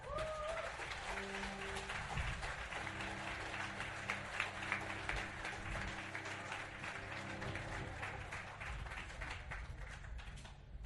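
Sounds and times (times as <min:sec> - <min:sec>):
audience applause: 0:00.0 - 0:10.7.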